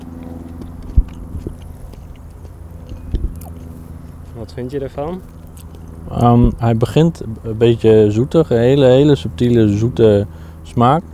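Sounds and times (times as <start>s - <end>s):
person chewing an edible evening primrose flower: 0.0s - 4.4s, 5.2s - 6.3s
speech: 4.5s - 5.4s, 6.1s - 11.1s.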